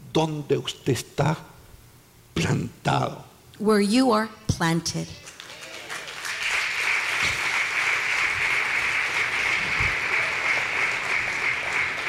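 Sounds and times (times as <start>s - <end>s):
speech: 0.2s - 1.5s, 2.4s - 5.3s
church congregation applauding during a sermon: 5.3s - 12.0s.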